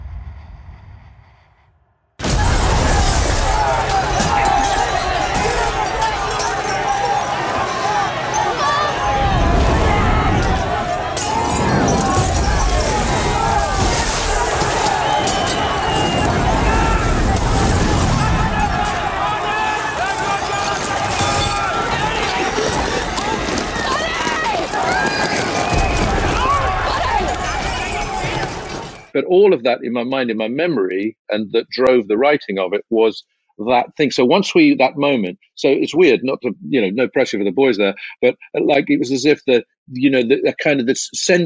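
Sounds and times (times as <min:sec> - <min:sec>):
riot crowd: 0:02.2 - 0:29.2
speech: 0:29.4 - 0:41.4.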